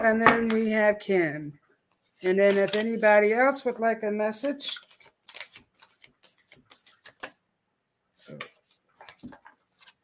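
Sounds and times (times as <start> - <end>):
speech: 0.0 - 1.6, 2.2 - 5.0
cards being shuffled and drawn for a card reading: 2.2 - 3.2, 4.4 - 7.4, 8.5 - 10.0.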